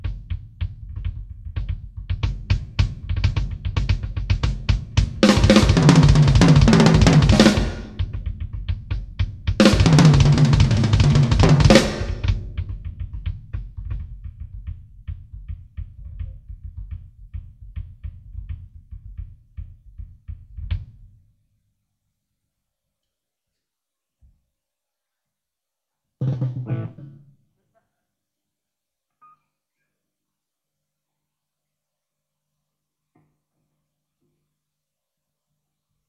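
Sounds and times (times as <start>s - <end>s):
drum solo: 0.0s - 21.2s, 26.2s - 27.3s.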